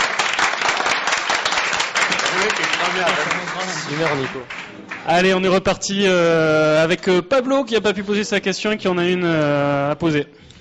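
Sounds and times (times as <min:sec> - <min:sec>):
audience applause: 0:00.0 - 0:05.4
speech: 0:02.4 - 0:10.5.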